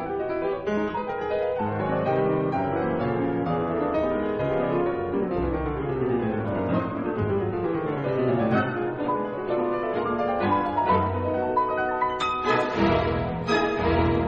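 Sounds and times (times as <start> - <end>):
piano toccata: 0.0 - 14.2.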